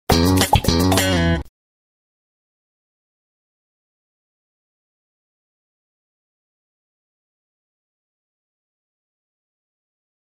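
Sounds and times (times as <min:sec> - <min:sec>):
sitcom bass riff: 0:00.1 - 0:01.5.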